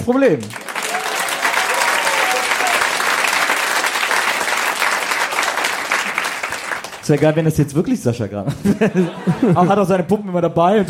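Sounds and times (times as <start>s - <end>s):
speech: 0.0s - 0.7s, 7.1s - 10.8s
audience applause: 0.0s - 7.5s
laughter: 8.4s - 10.8s.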